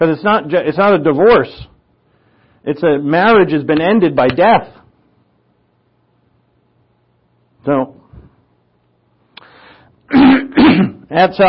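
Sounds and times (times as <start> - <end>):
speech: 0.0 - 1.7, 2.6 - 4.8, 7.6 - 8.0, 10.1 - 11.4
speaker clearing throat during a Bible teaching: 10.1 - 11.1.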